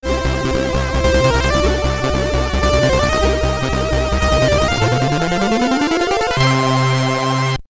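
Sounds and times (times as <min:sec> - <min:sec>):
Commodore 64 SID stereo chiptune ending: 0:00.0 - 0:07.6.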